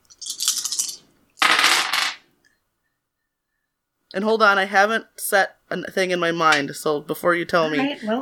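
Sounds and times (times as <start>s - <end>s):
dice being rolled: 0.2s - 2.2s
speech: 4.1s - 8.1s.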